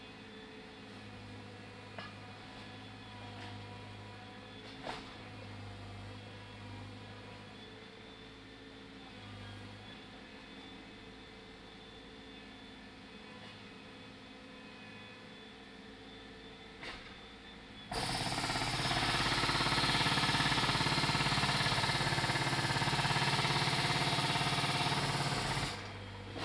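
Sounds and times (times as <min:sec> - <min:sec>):
pneumatic jackhammer: 0:17.9 - 0:26.4.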